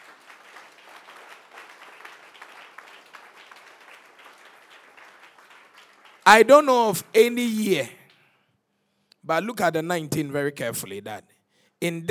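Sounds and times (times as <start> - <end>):
audience applause: 0.0 - 6.7
speech: 6.3 - 8.0, 9.3 - 12.0.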